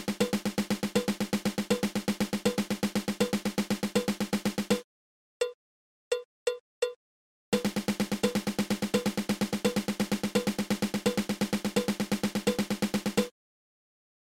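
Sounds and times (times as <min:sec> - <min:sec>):
drum triple stroke roll: 0:00.0 - 0:04.8, 0:07.6 - 0:13.3.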